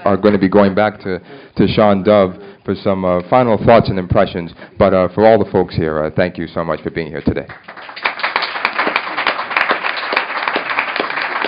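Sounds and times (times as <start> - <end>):
speech: 0.1 - 8.0
audience applause: 7.5 - 11.4.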